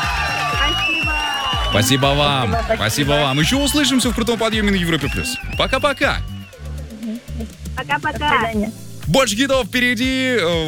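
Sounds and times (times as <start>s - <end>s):
audience applause: 0.0s - 7.0s
audience cheering and whooping: 0.0s - 7.0s
speech: 1.8s - 6.3s, 7.4s - 10.6s.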